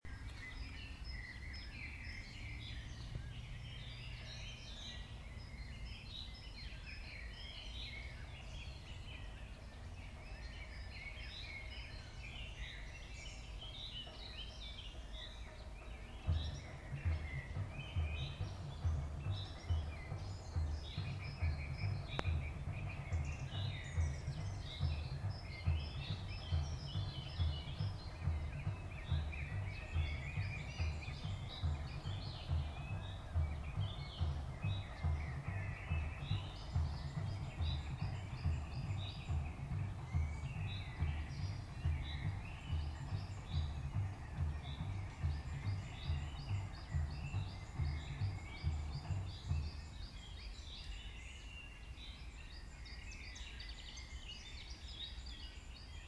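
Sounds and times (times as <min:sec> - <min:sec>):
birds twittering in Berlin's Tiergarten: 0:00.0 - 0:56.0
samba group drumming in Berlin's Tiergarten: 0:01.8 - 0:52.0.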